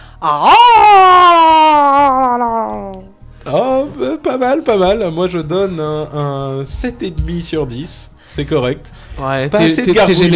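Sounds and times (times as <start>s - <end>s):
speech: 0.2s - 1.2s, 4.3s - 10.3s
person imitating a murloc's cry: 0.2s - 3.1s.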